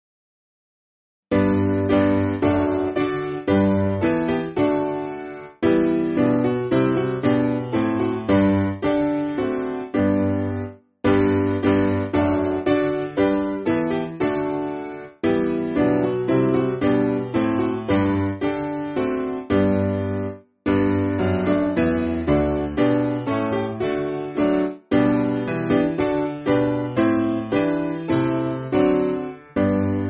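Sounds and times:
church piano music: 1.3s - 30.0s.

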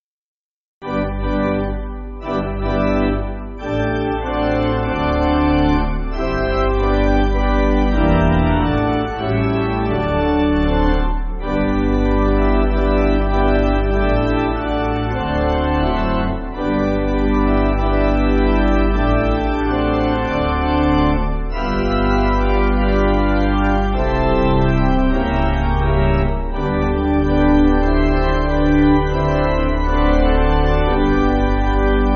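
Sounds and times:
pipe organ backing music: 0.8s - 32.1s.

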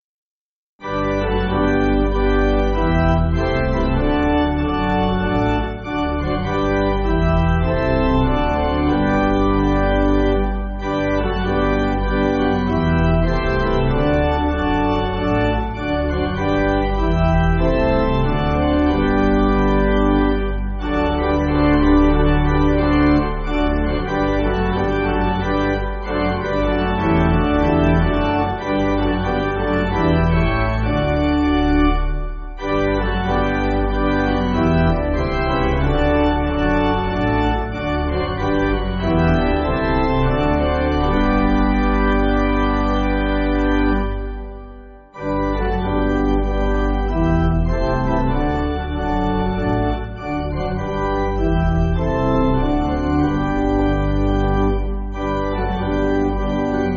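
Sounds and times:
church pipe organ backing: 0.8s - 56.9s.

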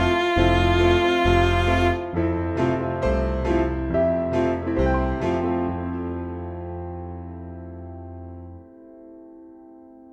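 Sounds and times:
MIDI music: 0.0s - 5.7s.

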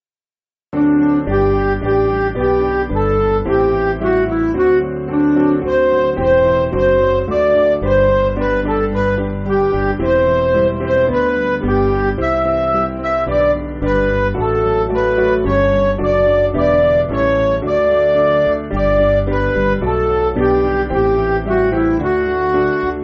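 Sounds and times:
MIDI music: 0.8s - 23.0s.

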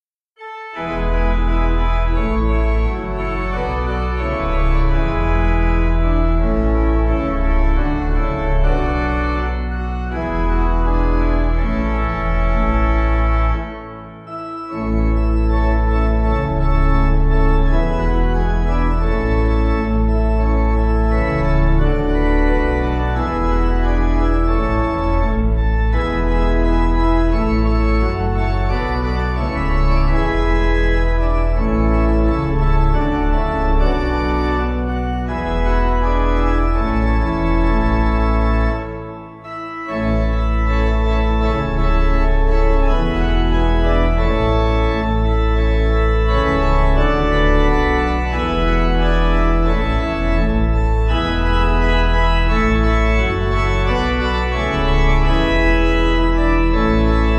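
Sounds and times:
pipe organ hymn: 0.4s - 57.3s.

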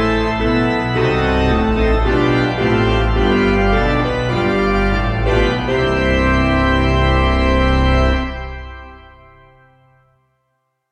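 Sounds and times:
organ: 0.0s - 10.2s
piano: 0.0s - 10.8s.

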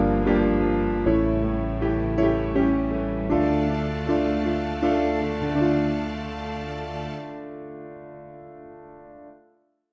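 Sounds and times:
midi music: 0.0s - 7.5s.

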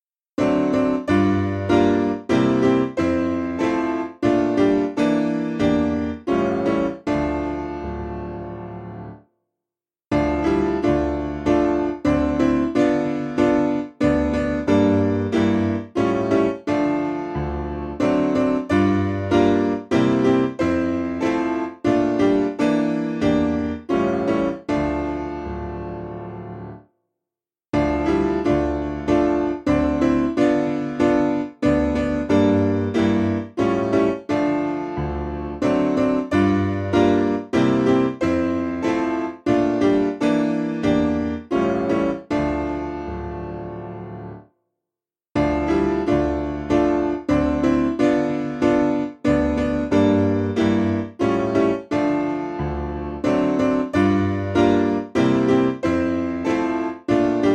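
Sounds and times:
piano: 0.0s - 9.3s, 10.1s - 27.0s, 27.7s - 44.6s, 45.3s - 57.5s.

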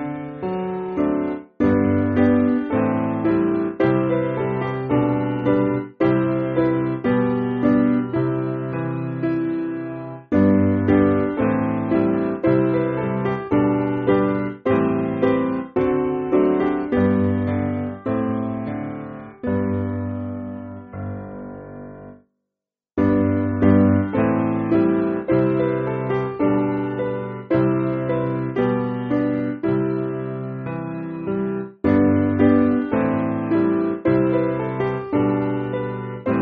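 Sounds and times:
piano: 0.0s - 22.3s, 23.0s - 36.4s.

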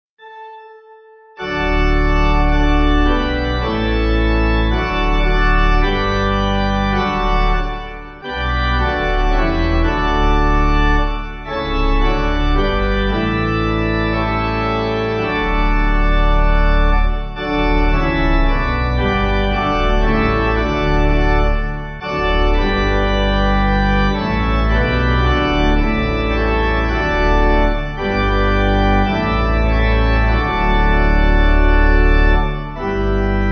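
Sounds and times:
church pipe organ backing music: 0.2s - 33.5s.

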